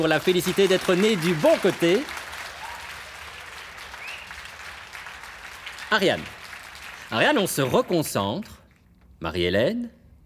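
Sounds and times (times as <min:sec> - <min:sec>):
speech: 0:00.0 - 0:02.2, 0:05.9 - 0:06.4, 0:07.1 - 0:08.6, 0:09.2 - 0:10.0
audience applause: 0:00.0 - 0:07.8.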